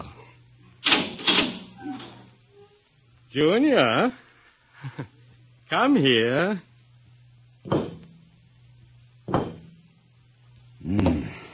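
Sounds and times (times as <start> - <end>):
sharp clattering bursts of a door opening: 0.8 - 2.3
door opening: 0.8 - 2.7
speech: 3.3 - 4.2, 4.8 - 6.7.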